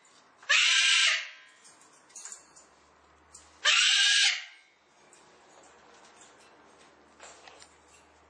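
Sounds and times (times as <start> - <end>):
cockatoo raspy drawn-out screeches: 0.5 - 1.4, 3.6 - 4.6.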